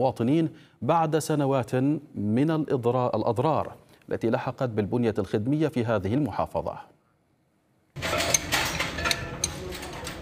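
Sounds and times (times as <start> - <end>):
speech: 0.0 - 6.9
wrenches in a car workshop: 8.0 - 10.1.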